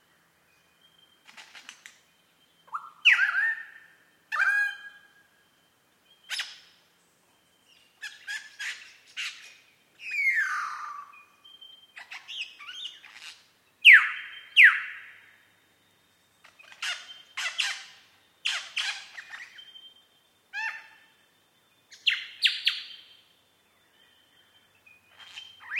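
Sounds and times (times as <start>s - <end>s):
superb lyrebird song of varied phrases: 0.0s - 25.7s.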